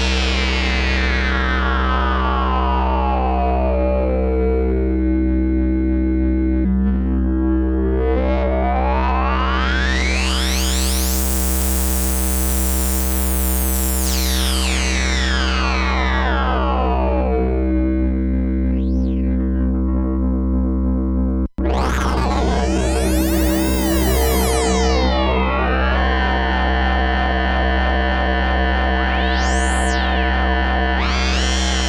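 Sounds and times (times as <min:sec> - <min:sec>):
Vermona FM synthesizer: 0:00.0 - 0:31.8.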